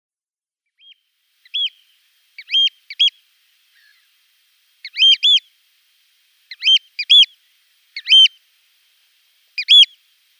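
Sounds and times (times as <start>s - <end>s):
Eurasian oystercatcher piping calls: 0.8s - 3.2s, 4.8s - 5.5s, 6.5s - 8.4s, 9.6s - 10.0s.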